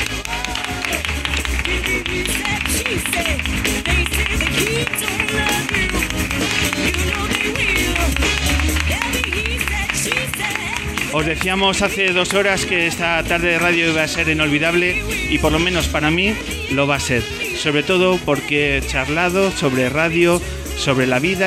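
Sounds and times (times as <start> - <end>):
audience applause: 0.0 - 14.6
speech: 11.1 - 21.4.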